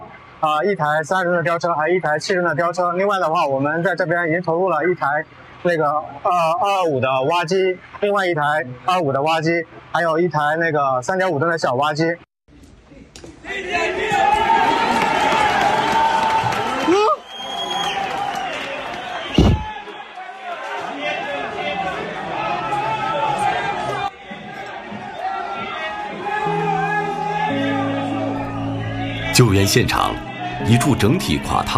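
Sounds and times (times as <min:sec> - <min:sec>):
speech: 0:00.4 - 0:12.3, 0:29.4 - 0:31.7
rescue workers cheering and shouting excitedly at collapse site: 0:13.4 - 0:31.7
sharp thud: 0:19.4 - 0:19.7.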